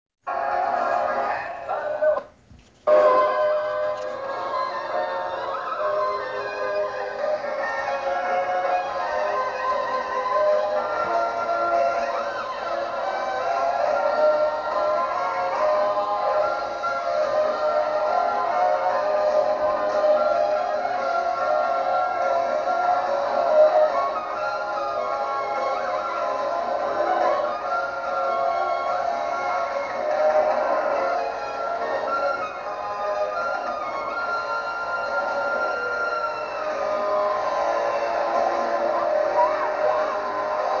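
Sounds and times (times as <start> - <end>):
circus music high notes: 0.2 - 40.7.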